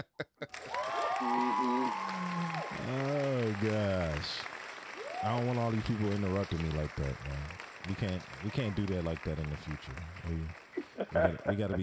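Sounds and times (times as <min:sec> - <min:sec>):
laughter: 0:00.0 - 0:01.8, 0:02.4 - 0:04.4, 0:05.3 - 0:11.8
voices whooping and cheering: 0:00.5 - 0:06.2
audience applause: 0:00.5 - 0:11.8
speech: 0:03.6 - 0:04.5, 0:05.2 - 0:11.8.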